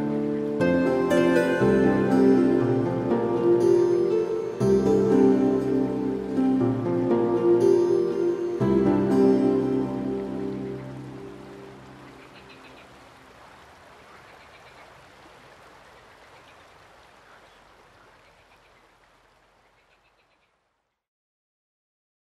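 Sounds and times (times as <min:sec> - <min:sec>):
Celtic fantasy hymn music: 0:00.0 - 0:12.2.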